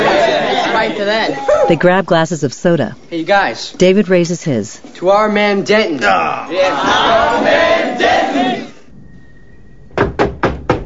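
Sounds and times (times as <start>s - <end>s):
laughter: 0.0s - 1.9s
speech: 0.8s - 8.6s
firm knocking on a door: 9.9s - 10.8s.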